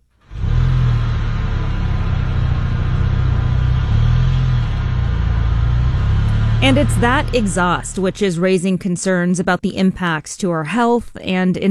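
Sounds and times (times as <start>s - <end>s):
vehicles idling in drive-thru line: 0.2s - 8.6s
speech: 6.6s - 11.6s.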